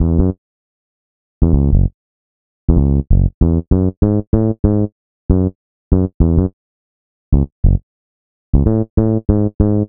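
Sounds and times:
electric bass: 0:00.0 - 0:00.4, 0:01.4 - 0:01.9, 0:02.7 - 0:06.6, 0:07.3 - 0:07.8, 0:08.6 - 0:09.8.

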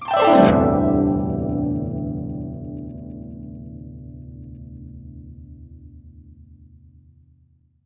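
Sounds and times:
guqin plucked: 0:00.0 - 0:03.5.

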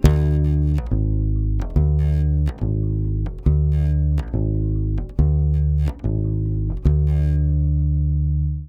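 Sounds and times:
Brazil bossa rhythm: 0:00.0 - 0:08.5.

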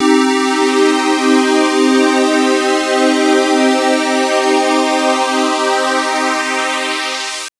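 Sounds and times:
minor synth pad with pulse sweep in C3: 0:00.0 - 0:07.5.

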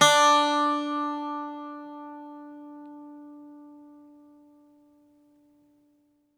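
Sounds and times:
Greek bazouki plucked strings: 0:00.0 - 0:04.7.

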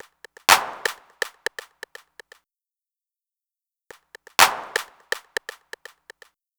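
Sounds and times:
stick clap: 0:00.0 - 0:02.4, 0:03.9 - 0:06.3.

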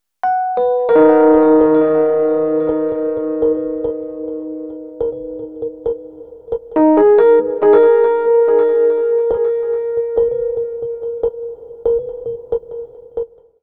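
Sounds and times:
ambient Rhodes electric piano: 0:00.2 - 0:13.5.

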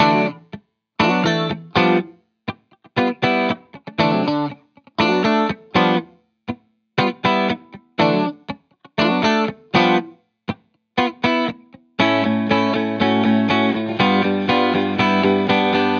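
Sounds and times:
70s guitars in D: 0:00.0 - 0:15.9.

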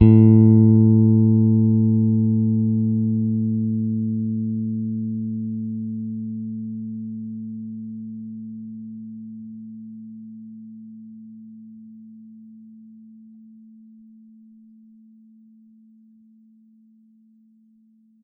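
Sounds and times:
soft G sharp bass note on Pedulla Thunderbass guitar: 0:00.0 - 0:09.4.

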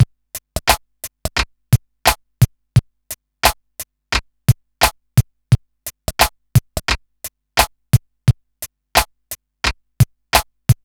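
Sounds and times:
music beat: 0:00.0 - 0:01.5, 0:02.1 - 0:07.0, 0:08.6 - 0:10.8.

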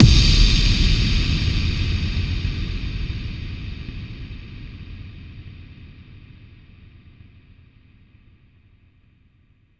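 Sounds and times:
effect kick drum hits: 0:00.0 - 0:03.2.

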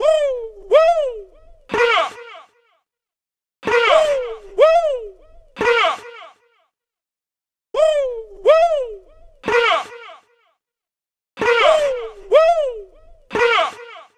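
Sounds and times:
woo woo vocals: 0:00.0 - 0:02.3, 0:03.7 - 0:06.1, 0:07.8 - 0:10.0, 0:11.4 - 0:14.1.

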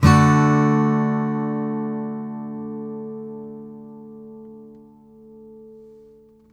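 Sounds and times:
blues guitar D major chord: 0:00.0 - 0:05.8.

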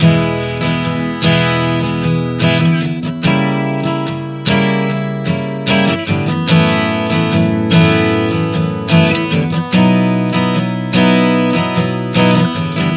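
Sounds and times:
acoustic guitar chord progression: 0:00.0 - 0:12.9.

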